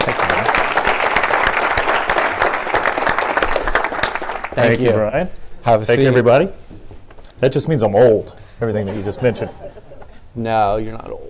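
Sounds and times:
round of applause: 0.0 - 4.8
speech: 4.6 - 6.6, 7.4 - 9.6, 10.4 - 11.2
laughter: 8.8 - 10.2.

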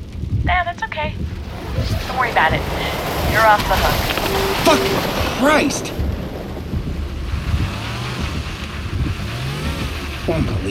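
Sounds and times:
car engine rumble as car skids off the road: 0.0 - 10.6
rising whines of sliding car: 1.2 - 9.0
speech: 2.4 - 6.0, 10.3 - 10.6.

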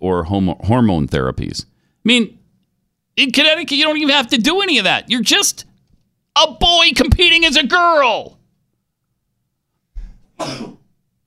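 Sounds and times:
speech: 0.0 - 2.4, 3.2 - 5.7, 6.4 - 8.4, 10.4 - 10.8
person sneezing: 10.0 - 10.9.

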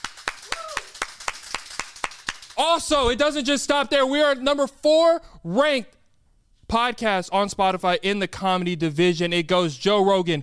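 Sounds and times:
hand claps: 0.0 - 2.6
whistle or whoop: 0.5 - 1.0
speech: 2.6 - 6.0, 6.7 - 10.4.

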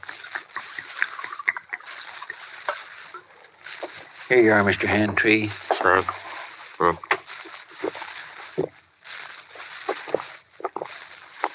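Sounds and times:
liquor glugging from a jug into a cup: 0.1 - 3.6
speech: 4.3 - 6.2, 6.8 - 7.1.

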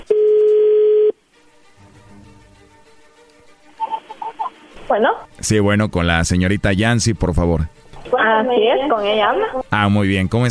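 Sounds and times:
telephone call ringing tone: 0.0 - 1.2
speech: 4.9 - 10.4.

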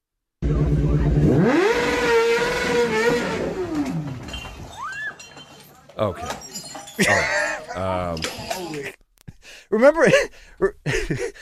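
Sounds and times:
motorcycle engine revving: 0.4 - 4.3
speech: 6.0 - 6.4, 9.8 - 11.4
laughter: 6.9 - 9.0, 10.0 - 11.4.

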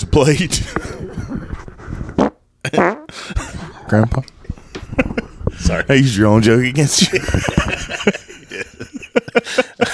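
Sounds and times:
speech: 0.0 - 1.0, 2.7 - 3.3, 3.9 - 4.4, 5.0 - 8.2
fart noise: 2.1 - 3.1
laughter: 4.6 - 5.6, 6.9 - 9.9.

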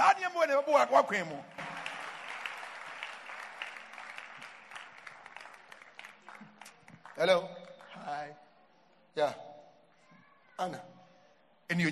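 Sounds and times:
speech: 0.4 - 1.6, 7.2 - 8.4, 9.2 - 9.5, 10.6 - 10.9, 11.7 - 11.9
audience clapping hands: 1.4 - 8.3.

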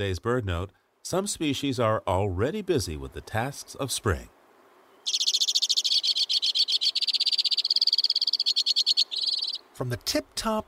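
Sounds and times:
speech: 0.0 - 4.4, 9.8 - 10.6
white-winged crossbill rapid trilling song: 4.9 - 9.7.

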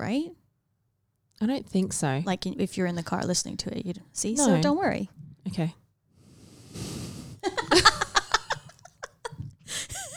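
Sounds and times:
speech: 0.0 - 0.4, 1.4 - 5.8
woman blowing her nose on the microphone: 6.3 - 7.5
laughter: 7.4 - 10.1.

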